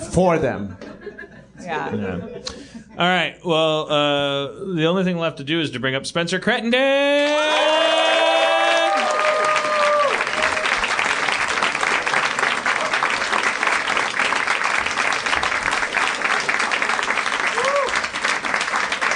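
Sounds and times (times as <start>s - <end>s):
speech: 0.2s - 0.8s, 1.6s - 7.9s
audience applause: 7.3s - 19.1s.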